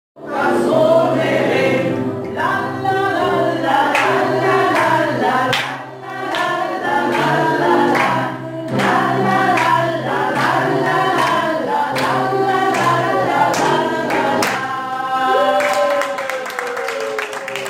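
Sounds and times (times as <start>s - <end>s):
person singing: 0.2s - 17.6s.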